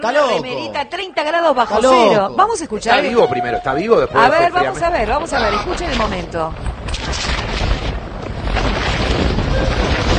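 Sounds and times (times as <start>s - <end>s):
speech: 0.0s - 7.3s
strong wind buffeting the microphone in Antarctica at thirty below zero: 3.8s - 10.1s.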